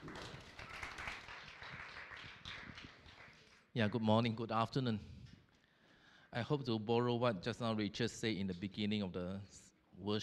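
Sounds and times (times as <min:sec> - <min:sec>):
church congregation clapping to welcome a pastor: 0:00.0 - 0:03.7
speech: 0:03.8 - 0:05.1, 0:06.3 - 0:10.2.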